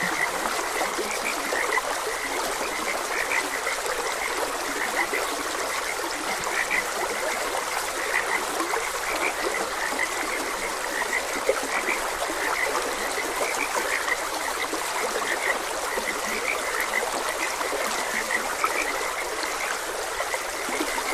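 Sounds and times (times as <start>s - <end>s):
frogs croaking: 0.0s - 21.1s
stream babbling: 0.0s - 21.1s.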